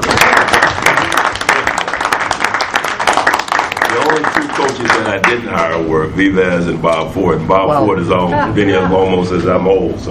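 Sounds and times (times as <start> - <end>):
audience applause: 0.0 - 5.4
speech: 3.9 - 10.0.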